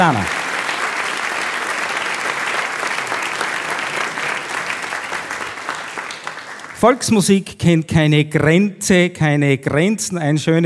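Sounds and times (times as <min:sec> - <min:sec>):
speech: 0:00.0 - 0:00.4, 0:06.8 - 0:10.6
audience applause: 0:00.0 - 0:07.0.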